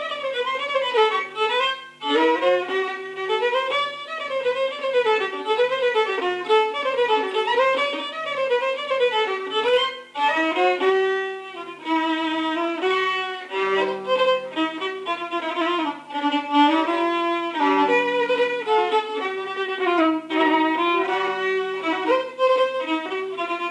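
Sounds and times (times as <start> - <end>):
violin playing a folk polka: 0.0 - 23.7.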